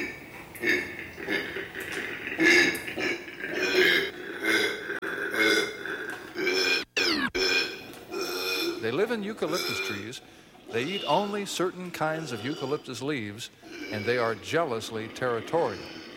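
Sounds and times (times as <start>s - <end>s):
territorial male marsupial's ferocious grunting call in eucalyptus enclosure: 0.0s - 10.1s, 13.6s - 16.1s
speech: 9.0s - 16.0s.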